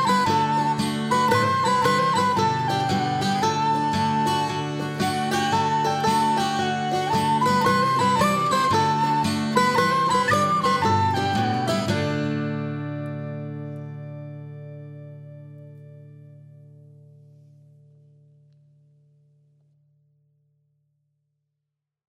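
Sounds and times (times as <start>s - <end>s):
flute music: 0.0s - 13.0s.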